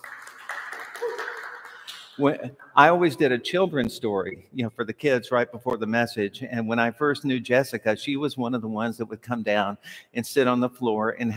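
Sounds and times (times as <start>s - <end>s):
church congregation clapping to welcome a guest: 0.0s - 3.0s
speech: 2.2s - 11.3s.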